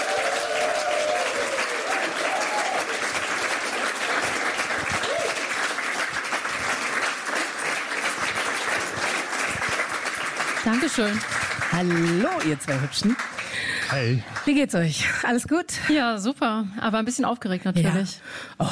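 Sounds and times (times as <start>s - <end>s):
faint whoops: 0.0s - 3.0s, 5.0s - 5.5s
audience applause: 0.0s - 14.6s
speech: 10.7s - 13.3s, 13.9s - 18.7s.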